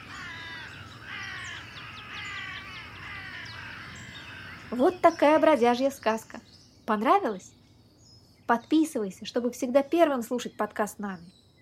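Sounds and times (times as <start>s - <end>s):
flock of crows cawing: 0.0s - 5.2s
speech: 4.7s - 7.6s, 8.5s - 11.4s.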